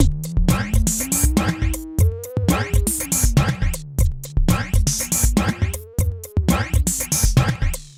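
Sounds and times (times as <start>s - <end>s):
electro music: 0.0s - 7.9s.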